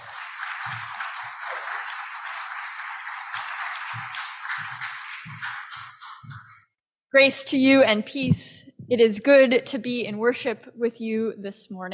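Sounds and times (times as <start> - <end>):
audience applause: 0.0 - 6.6
speech: 7.1 - 11.9.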